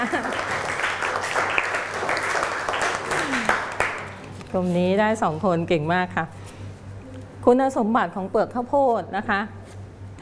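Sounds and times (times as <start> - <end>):
classroom group clapping: 0.0 - 4.3
speech: 4.5 - 6.4, 7.4 - 9.6.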